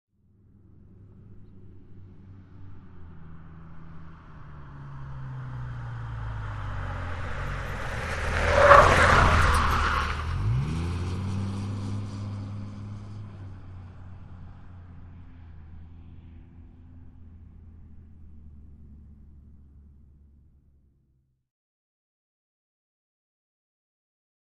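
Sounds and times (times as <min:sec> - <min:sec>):
Dodge Ram truck with V-10 engine cornering past: 0:00.4 - 0:20.9
light cornering tyre skid: 0:06.5 - 0:13.2.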